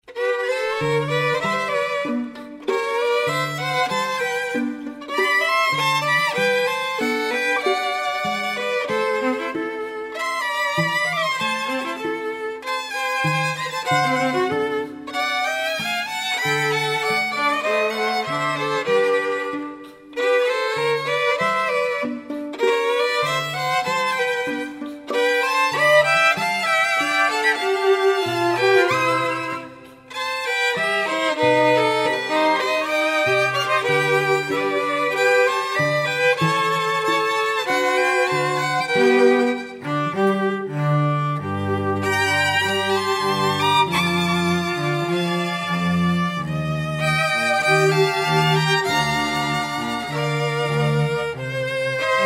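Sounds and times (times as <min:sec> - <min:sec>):
string quartet playing tango: 0:00.0 - 0:52.2.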